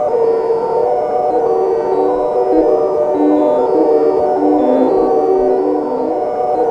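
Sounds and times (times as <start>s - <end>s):
sci-fi atmosphere: 0.0s - 6.6s
voices: 2.5s - 6.3s.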